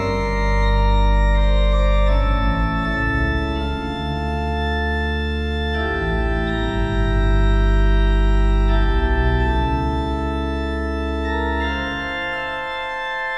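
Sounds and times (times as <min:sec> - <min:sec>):
computer-generated organ prelude with suspension appoggiatura: 0:00.0 - 0:13.3.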